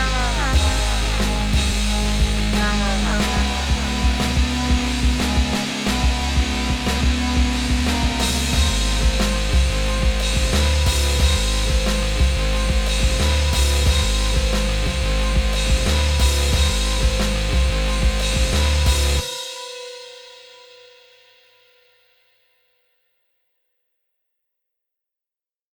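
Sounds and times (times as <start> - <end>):
main level game music: 0.0 - 19.3.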